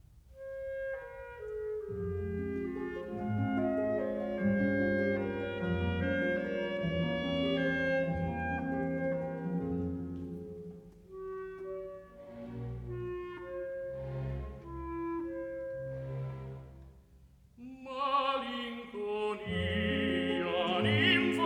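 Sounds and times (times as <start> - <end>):
piano: 0.0 - 21.4
voice: 17.6 - 21.4.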